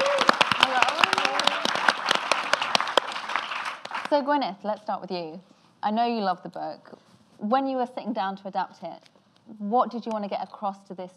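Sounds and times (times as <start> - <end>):
audience applause: 0.0 - 4.1
speech: 4.1 - 11.1.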